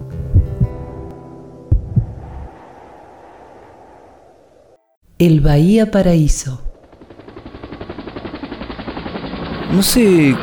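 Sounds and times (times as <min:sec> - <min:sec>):
slow heartbeat: 0:00.2 - 0:01.0, 0:01.7 - 0:02.6
speech: 0:05.2 - 0:06.7, 0:09.7 - 0:10.4.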